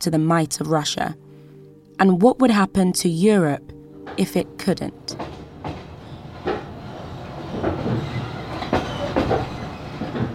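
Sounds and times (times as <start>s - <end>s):
speech: 0.0s - 1.3s, 2.0s - 5.2s
train rolling on rails heard from inside a carriage: 4.0s - 10.3s.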